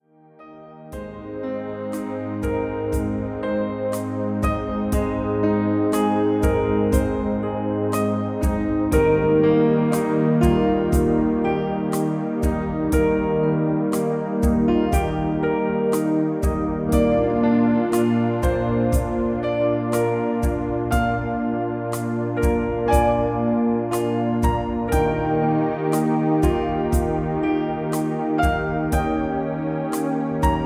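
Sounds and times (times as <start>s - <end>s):
piano music: 0.0s - 30.6s.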